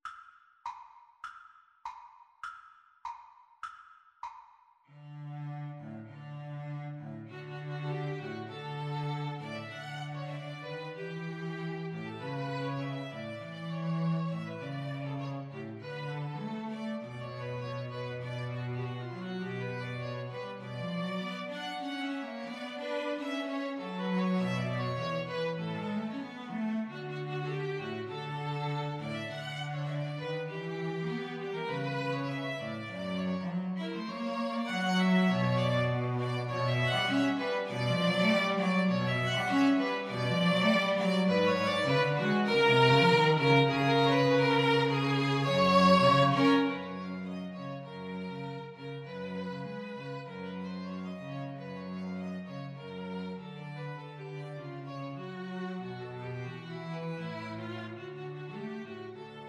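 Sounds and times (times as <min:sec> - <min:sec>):
string trio playing: 0:05.0 - 0:59.4.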